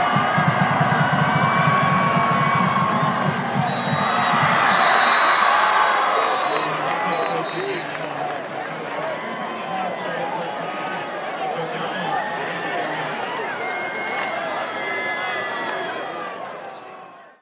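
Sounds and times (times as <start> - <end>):
drums at American football match: 0.0 - 6.8
crowd cheering at American football match kick off: 0.0 - 17.4
referee whistle at American football match: 3.6 - 8.0
announcer speaking at American football match: 3.7 - 8.3.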